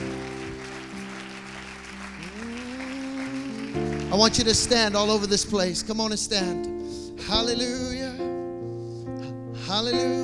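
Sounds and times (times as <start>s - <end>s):
audience clapping: 0.0s - 6.0s
sustained organ-like chords: 0.0s - 10.2s
speech: 3.7s - 8.0s, 9.7s - 10.2s.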